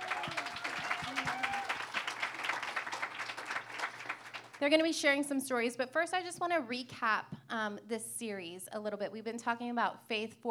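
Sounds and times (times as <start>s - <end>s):
audience applause for a panel at a church service: 0.0s - 4.6s
speech: 4.6s - 10.4s.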